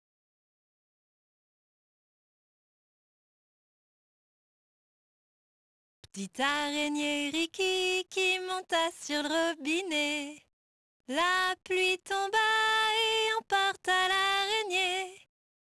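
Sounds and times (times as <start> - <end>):
person singing a nursery song in French: 6.1 - 10.5, 11.1 - 15.7.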